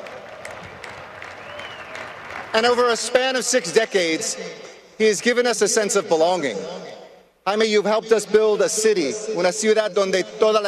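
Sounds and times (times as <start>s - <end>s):
audience applause: 0.0s - 2.8s
speech: 2.5s - 10.6s.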